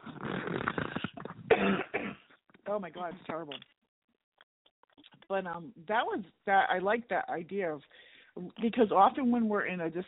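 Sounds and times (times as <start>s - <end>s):
person coughing: 0.9s - 2.3s
speech: 2.7s - 3.8s, 5.3s - 10.0s.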